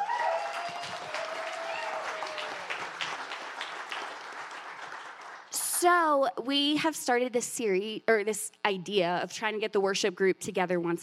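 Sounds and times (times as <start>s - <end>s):
crowd applauding: 0.0s - 5.8s
speech: 5.8s - 11.0s.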